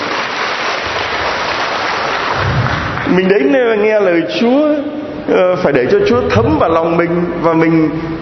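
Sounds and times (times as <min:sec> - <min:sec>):
church congregation applause: 0:00.0 - 0:03.6
speech: 0:03.1 - 0:08.2.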